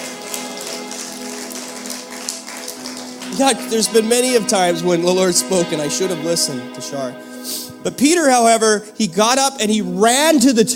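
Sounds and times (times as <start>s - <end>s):
women clapping: 0.0s - 4.4s
speech: 3.4s - 10.7s.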